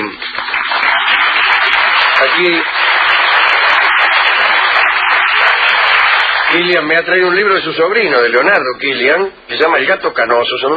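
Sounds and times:
audience applause greeting guests at a gathering: 0.0 - 7.0
speech: 2.2 - 2.8, 6.5 - 10.7.

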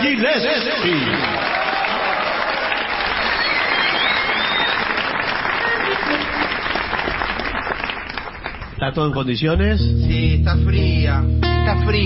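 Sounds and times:
audience applause: 0.0 - 8.8
speech: 0.1 - 1.5, 8.8 - 12.0.

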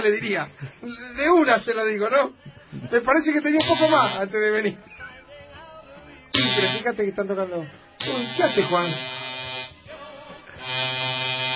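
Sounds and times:
speech: 0.0 - 5.0, 6.6 - 9.2
electric shaver buzzing while someone shaves: 3.6 - 4.2, 6.4 - 6.9, 8.0 - 9.8, 10.6 - 11.5.

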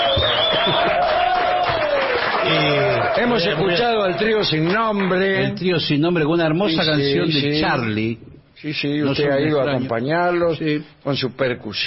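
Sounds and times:
crowd shouting and cheering: 0.0 - 4.6
scattered claps: 0.0 - 5.3
speech: 3.2 - 11.8.

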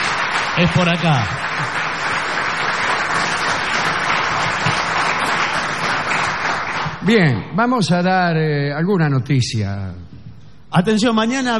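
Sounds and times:
audience applause: 0.0 - 7.0
speech: 0.6 - 1.5, 7.0 - 11.5.

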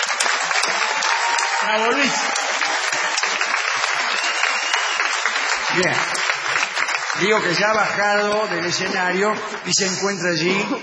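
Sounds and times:
audience applauding comedian Luis Piedrahita: 0.0 - 10.3
speech: 1.6 - 2.5, 5.8 - 6.2, 7.2 - 10.8.

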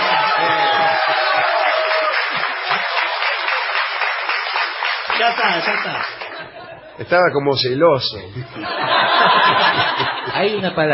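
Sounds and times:
audience applause: 0.0 - 6.4
speech: 5.2 - 6.2, 7.0 - 10.9
laughter: 5.2 - 7.3, 8.3 - 10.9.

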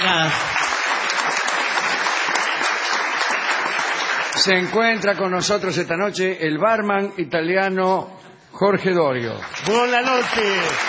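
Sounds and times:
audience ovation: 0.0 - 5.0, 9.2 - 10.8
speech: 0.2 - 0.6, 4.4 - 10.8.

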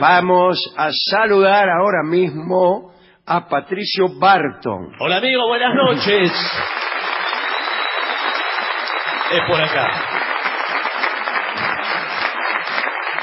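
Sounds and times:
speech: 0.0 - 6.9, 9.3 - 10.1
audience applause: 5.8 - 13.2.

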